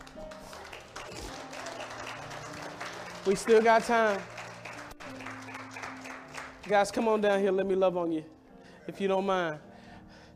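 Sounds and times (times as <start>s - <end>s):
crowd clapping in praise: 0.0s - 7.4s
speech: 3.2s - 4.3s, 6.7s - 9.7s.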